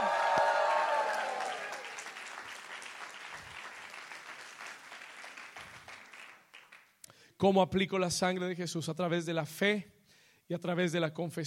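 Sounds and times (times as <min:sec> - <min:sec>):
audience shouting and cheering: 0:00.0 - 0:02.4
audience applauding: 0:00.0 - 0:06.9
speech: 0:07.4 - 0:09.9, 0:10.5 - 0:11.4.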